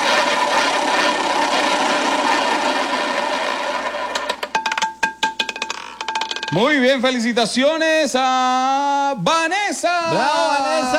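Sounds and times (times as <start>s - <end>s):
prize roulette wheel spinning: 0.0s - 6.7s
speech: 6.5s - 10.9s.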